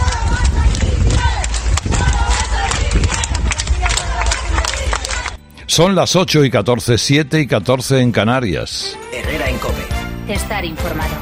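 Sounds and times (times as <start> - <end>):
police applauding hospital health workers: 0.0 - 5.4
speech: 5.8 - 11.1.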